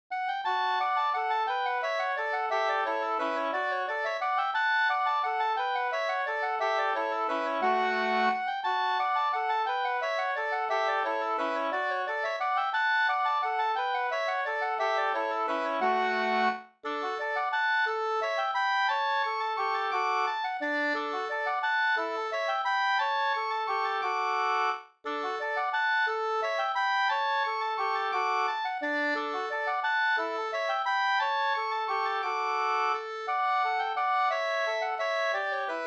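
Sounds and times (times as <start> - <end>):
waltz music: 0.2 - 35.8.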